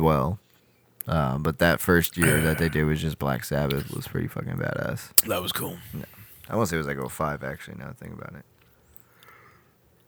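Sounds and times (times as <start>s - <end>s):
speech: 0.0s - 0.4s, 1.0s - 8.5s
person yawning: 2.1s - 2.8s, 5.2s - 6.3s.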